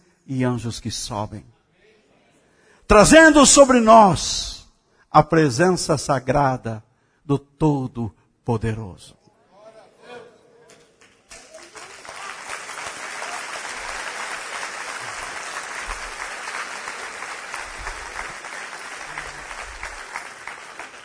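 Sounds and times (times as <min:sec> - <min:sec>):
speech: 0:00.3 - 0:01.6, 0:02.9 - 0:09.2
audience applause: 0:11.0 - 0:21.0.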